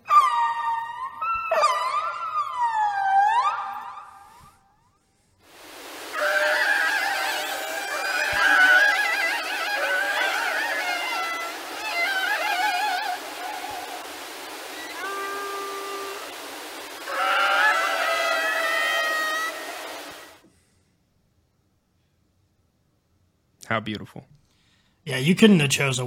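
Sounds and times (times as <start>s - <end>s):
orca whale calls: 0.0s - 4.6s, 6.1s - 20.4s
steady hiss of water noise: 5.4s - 20.5s
speech: 23.7s - 24.3s, 25.0s - 26.0s.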